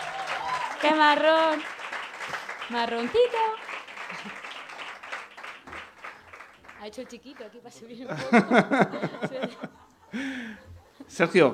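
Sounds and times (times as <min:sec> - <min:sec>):
audience applause: 0:00.0 - 0:07.6
speech: 0:00.8 - 0:01.8, 0:02.7 - 0:03.6, 0:04.2 - 0:04.4, 0:06.8 - 0:11.5
laughter: 0:04.0 - 0:04.6, 0:08.0 - 0:11.0.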